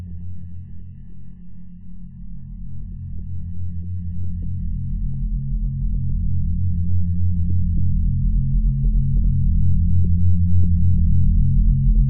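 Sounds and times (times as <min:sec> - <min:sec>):
science fiction spaceship interior low frequency drone: 0:04.1 - 0:12.0.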